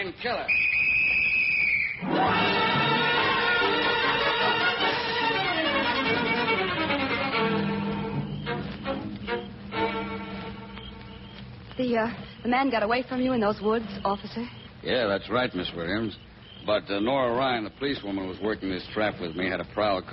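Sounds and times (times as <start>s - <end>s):
speech: 0.0s - 0.7s, 11.8s - 20.1s
police whistle blown as a signal: 0.3s - 10.9s.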